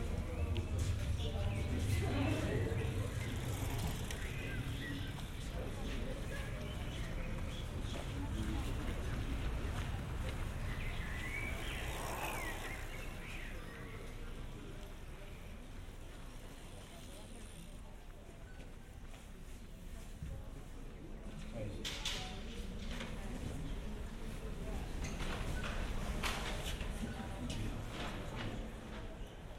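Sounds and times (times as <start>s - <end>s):
murmur of art lovers' voices at the Stedelijk Museum: 0.0s - 29.5s.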